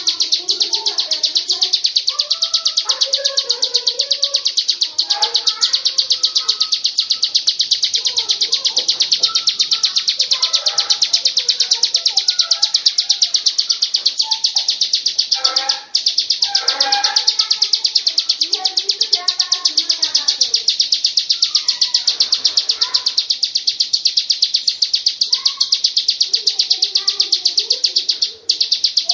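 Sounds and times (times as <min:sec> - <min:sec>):
bird song: 0:00.0 - 0:29.1.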